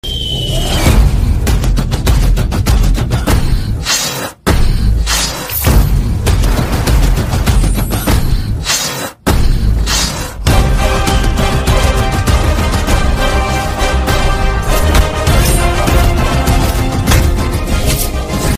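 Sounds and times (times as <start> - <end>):
trailer background music ringtone: 0.0 - 18.5.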